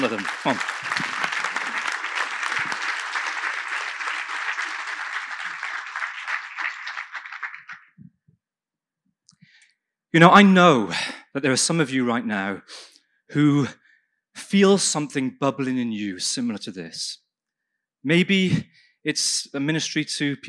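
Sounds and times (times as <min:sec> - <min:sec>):
speech: 0:00.0 - 0:01.0, 0:10.1 - 0:13.8, 0:14.4 - 0:17.2, 0:18.0 - 0:20.4
audience applause: 0:00.0 - 0:08.0.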